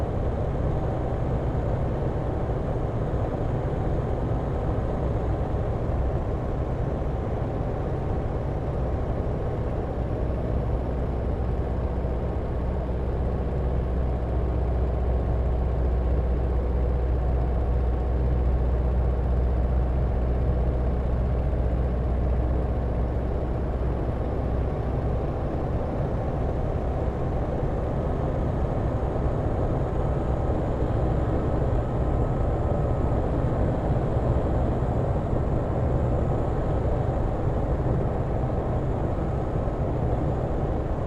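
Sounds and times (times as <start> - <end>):
1916 Sopwith Pup replica aircraft flying, interior: 0.0 - 41.0.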